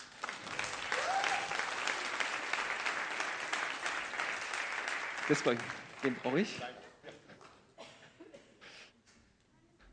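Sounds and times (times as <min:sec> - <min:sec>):
audience applause for the band: 0:00.0 - 0:06.8
speech: 0:05.3 - 0:06.8.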